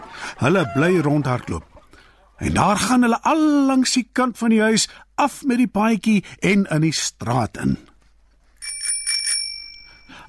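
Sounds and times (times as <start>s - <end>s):
speech: 0.4s - 1.7s, 2.4s - 7.9s
bicycle bell ringing: 8.6s - 10.1s.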